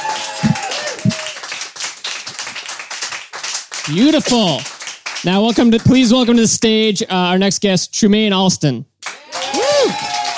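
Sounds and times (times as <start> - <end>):
audience applause at a Valentine's Day stage show: 0.0 - 6.1, 9.0 - 10.3
speech: 3.9 - 8.9.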